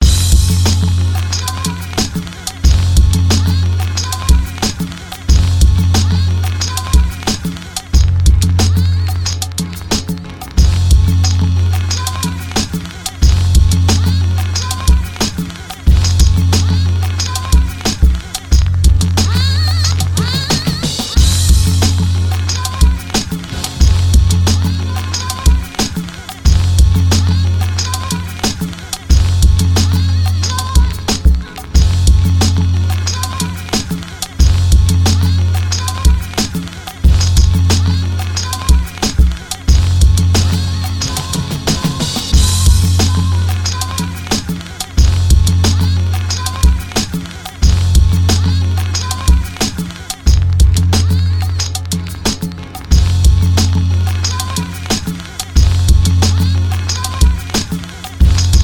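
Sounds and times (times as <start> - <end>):
music beat: 0.0 - 58.6.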